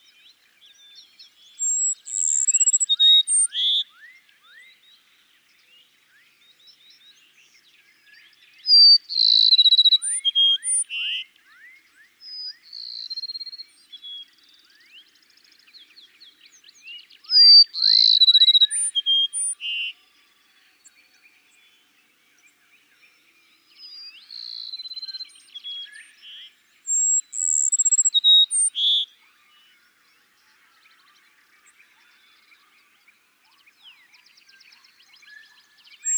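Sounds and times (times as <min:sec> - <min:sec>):
Cassin's sparrow singing: 0:01.5 - 0:03.8, 0:08.8 - 0:11.6, 0:16.4 - 0:20.1, 0:24.2 - 0:29.1, 0:32.8 - 0:36.1.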